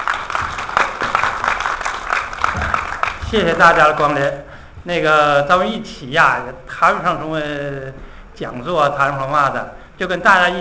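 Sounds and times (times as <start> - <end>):
crowd applause: 0.0 - 4.0
speech: 3.3 - 10.5.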